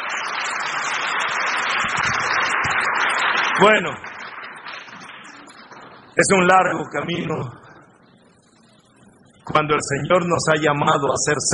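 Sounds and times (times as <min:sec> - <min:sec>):
audience applauding: 0:00.0 - 0:07.3
speech: 0:03.6 - 0:04.1, 0:06.2 - 0:07.6, 0:09.6 - 0:11.5.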